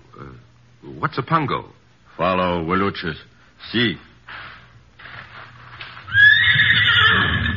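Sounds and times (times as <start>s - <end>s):
speech: 1.0s - 4.4s
buffalo pony neighing: 6.1s - 7.5s.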